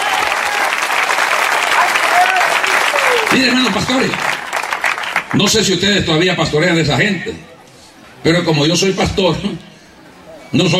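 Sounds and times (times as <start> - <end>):
audience applause: 0.0 - 5.6
speech: 3.4 - 4.4, 5.3 - 7.5, 8.2 - 9.7, 10.5 - 10.7.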